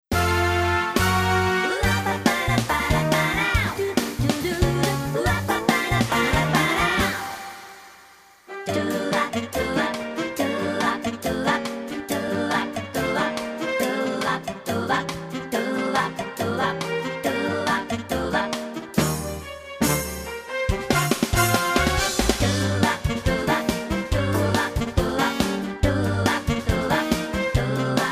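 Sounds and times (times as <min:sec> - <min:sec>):
backing track: 0:00.1 - 0:28.0.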